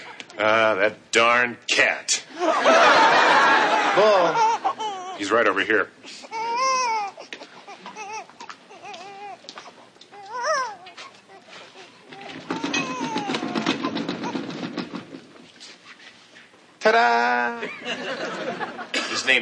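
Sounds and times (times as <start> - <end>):
speech: 0.4 - 4.6, 5.2 - 6.4, 16.9 - 17.8, 19.2 - 19.4
laughter: 2.3 - 5.1, 17.0 - 19.2
baby crying: 3.9 - 5.4, 6.2 - 14.9.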